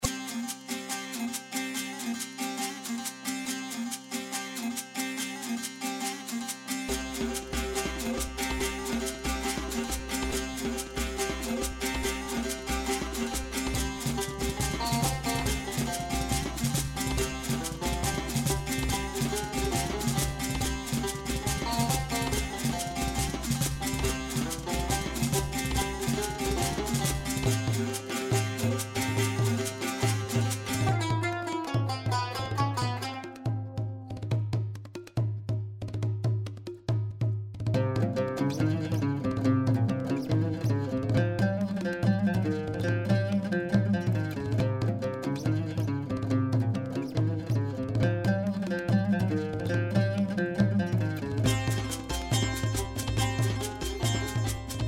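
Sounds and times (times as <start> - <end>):
ethnic music: 0.0 - 54.8.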